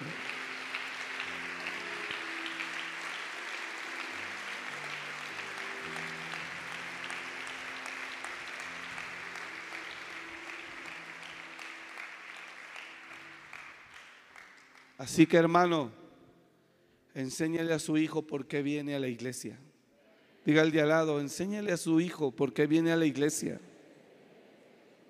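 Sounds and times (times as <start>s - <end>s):
faint musical tones: 0.0s - 14.4s
audience applauding loudly: 0.0s - 15.2s
speech: 15.0s - 16.0s, 17.2s - 19.7s, 20.4s - 23.7s.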